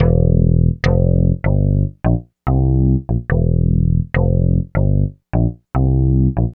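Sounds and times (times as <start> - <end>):
synth bass loops: 0.0 - 6.5.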